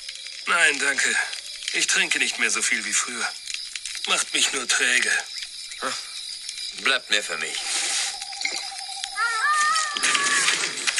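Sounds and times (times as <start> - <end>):
speech: 0.0 - 3.4, 4.0 - 6.1, 6.8 - 7.7
steady hissing background: 0.0 - 8.4
coyotes howling: 8.2 - 10.9.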